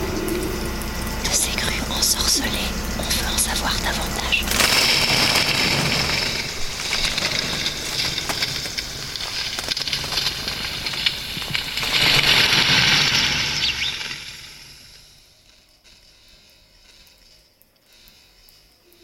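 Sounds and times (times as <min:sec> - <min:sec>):
construction crane operating: 0:00.0 - 0:15.0.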